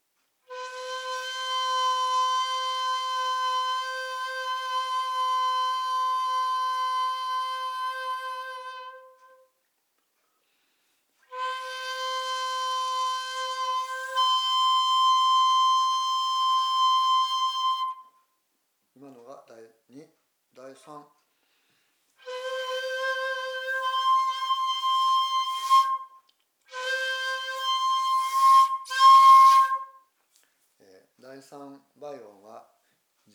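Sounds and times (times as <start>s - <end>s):
jinashi shakuhachi bamboo flute being played: 0.5s - 9.4s, 11.3s - 18.2s, 22.2s - 30.0s.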